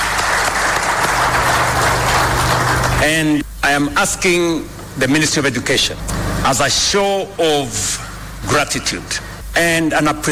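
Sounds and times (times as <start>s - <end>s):
audience clapping for best-performing schools and colleges: 0.0s - 3.4s
speech: 3.0s - 10.3s.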